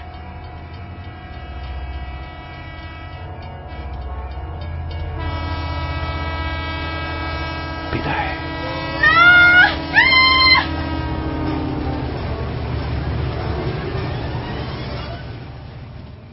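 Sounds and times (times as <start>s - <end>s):
sustained horn-like tones: 0.0s - 15.5s
train running over rails: 0.0s - 16.3s.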